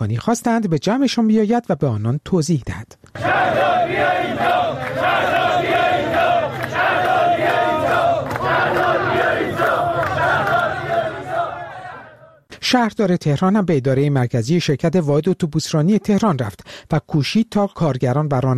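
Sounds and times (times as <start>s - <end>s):
speech: 0.0s - 5.3s, 12.7s - 18.5s
striking workers chanting at rally: 3.2s - 12.5s.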